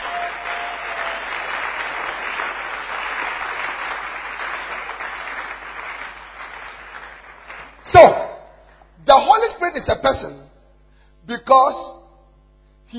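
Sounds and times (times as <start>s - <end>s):
congregation clapping during a sermon: 0.0s - 8.9s
speech: 9.8s - 10.5s, 11.5s - 12.0s.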